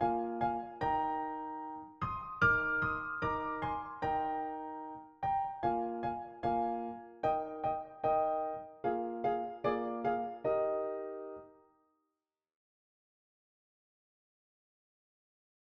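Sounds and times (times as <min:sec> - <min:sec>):
dance music on a PianoTeq Bechstein piano: 0:00.0 - 0:11.5.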